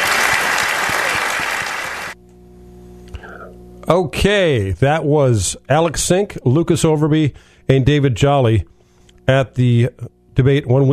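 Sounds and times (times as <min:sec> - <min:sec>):
crowd clapping: 0:00.0 - 0:02.2
quiet room hum: 0:00.0 - 0:10.9
speech: 0:03.9 - 0:10.9.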